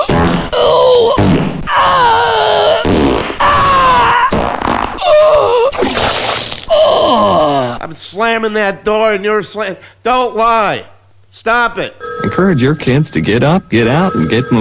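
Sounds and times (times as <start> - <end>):
loud sputtering farts: 0.1 - 6.8
speech: 8.5 - 14.5.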